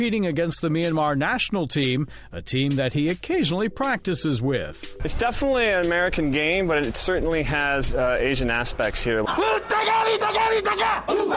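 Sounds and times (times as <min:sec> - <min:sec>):
speech: 0:00.0 - 0:11.3
baseball fans chanting cheers in stands: 0:09.3 - 0:11.3.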